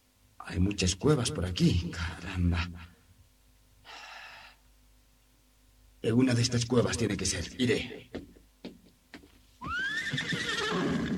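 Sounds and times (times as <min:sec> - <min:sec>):
speech: 0:00.5 - 0:02.9, 0:06.0 - 0:08.3
horse neighing near caves among large stones: 0:09.6 - 0:11.1.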